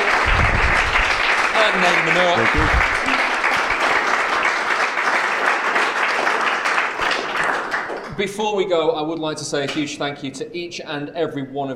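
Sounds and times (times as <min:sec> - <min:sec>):
live audience applause: 0:00.0 - 0:08.2
speech: 0:01.6 - 0:03.0, 0:08.2 - 0:11.7.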